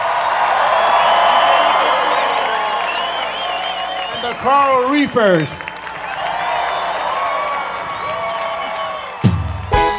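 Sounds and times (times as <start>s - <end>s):
crowd clapping to welcome a singer at a Hawaiian-themed show: 0.0s - 9.8s
crowd whoops and shrill whistles: 0.8s - 4.4s, 6.1s - 9.8s
speech: 4.3s - 5.6s.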